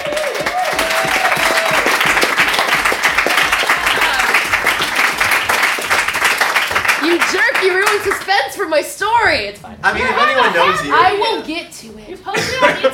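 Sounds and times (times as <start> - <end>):
audience applause: 0.0 - 8.3
speech: 8.7 - 12.9
laughter: 12.3 - 12.9.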